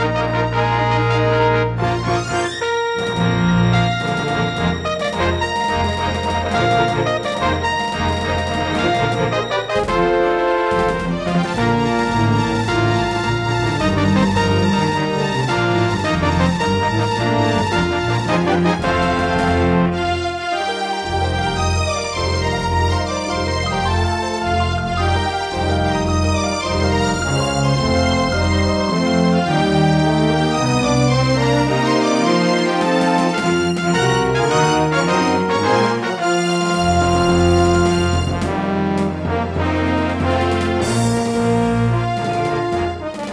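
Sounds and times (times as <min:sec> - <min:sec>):
Roland SC-88 synthesizer music intro: 0:00.1 - 0:43.1.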